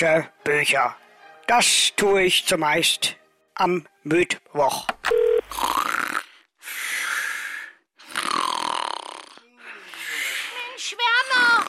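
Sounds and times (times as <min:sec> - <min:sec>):
speech: 0:00.0 - 0:06.0
person snoring asleep on the phone: 0:05.4 - 0:10.6, 0:11.4 - 0:11.6.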